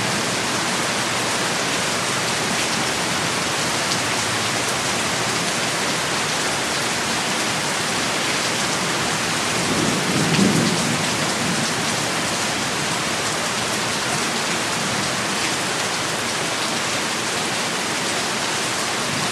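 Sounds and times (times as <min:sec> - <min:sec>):
heavy rain in a storm: 0:00.0 - 0:19.3
thunderstorm: 0:09.0 - 0:13.0.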